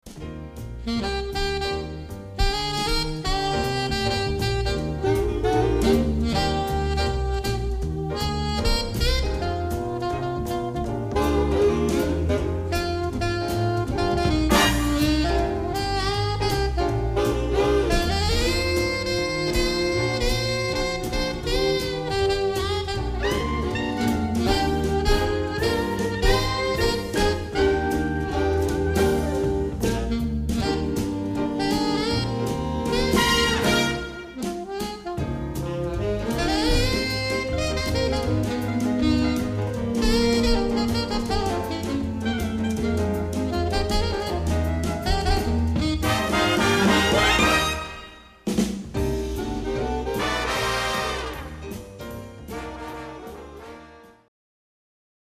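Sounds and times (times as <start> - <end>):
big band: 0.0 - 54.3.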